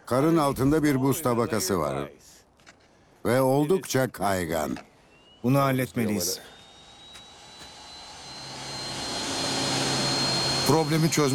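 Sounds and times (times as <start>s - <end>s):
speech: 0.1s - 2.4s, 3.2s - 6.6s, 10.7s - 11.3s
jet engine snow blower clearing railway tracks: 5.2s - 11.3s.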